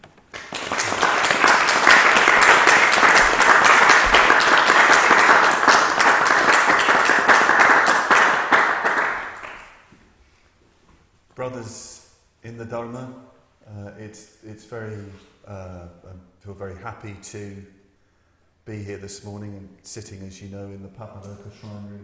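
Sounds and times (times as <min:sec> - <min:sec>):
audience applause: 0:00.0 - 0:09.8
speech: 0:12.6 - 0:17.8, 0:18.6 - 0:22.0.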